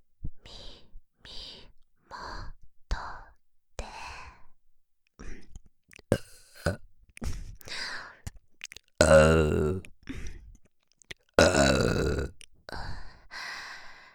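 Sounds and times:
mouth clicks and breaths: 5.2s - 12.5s
crude gurgling burps close to the microphone: 8.6s - 10.0s, 11.4s - 12.4s.

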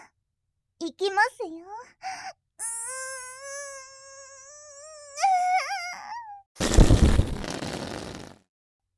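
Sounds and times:
speech: 0.8s - 2.4s
huge fart: 6.6s - 8.4s.

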